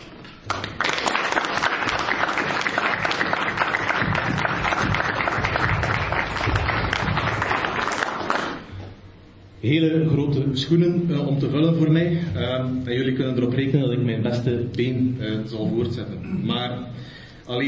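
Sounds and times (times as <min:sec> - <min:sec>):
audience applause: 0:00.5 - 0:08.7
speech: 0:09.7 - 0:17.6.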